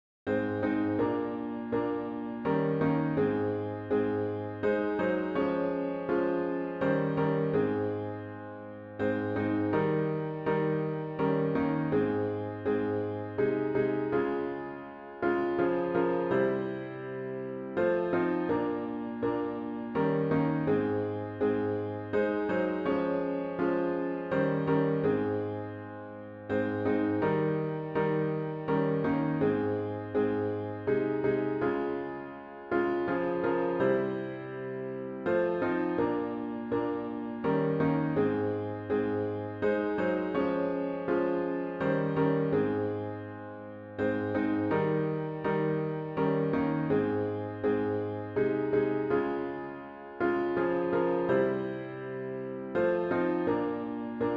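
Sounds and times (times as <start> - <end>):
hymn on piano with intro: 0.3 - 54.3.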